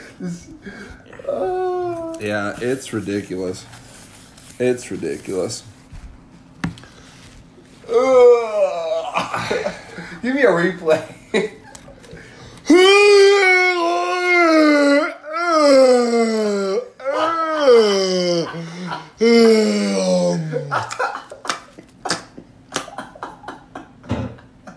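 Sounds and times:
speech: 0:00.2 - 0:01.5, 0:02.2 - 0:03.8, 0:04.6 - 0:05.8, 0:09.5 - 0:11.5
woman yawning: 0:00.2 - 0:02.3, 0:07.8 - 0:09.4, 0:12.6 - 0:20.8.

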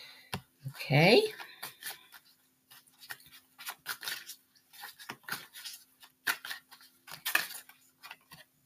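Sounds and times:
speech: 0:00.9 - 0:01.4
oracle cards being pulled from a deck: 0:03.0 - 0:08.5.

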